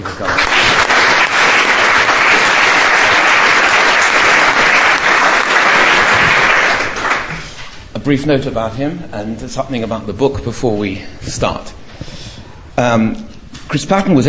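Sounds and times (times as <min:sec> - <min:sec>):
audience applause welcoming Chris Patten: 0:00.0 - 0:07.6
speech: 0:08.1 - 0:11.8, 0:12.8 - 0:14.2.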